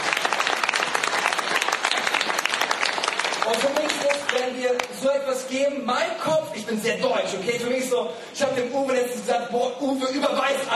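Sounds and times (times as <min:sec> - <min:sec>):
audience applause: 0:00.0 - 0:05.0
speech: 0:03.5 - 0:10.7.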